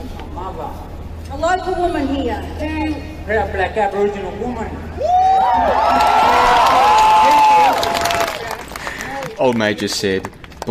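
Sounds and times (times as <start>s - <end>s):
speech: 0.4s - 6.8s, 9.4s - 10.6s
crowd cheering and whooping at a Black Lives Matter protest in June 2020: 5.0s - 9.3s.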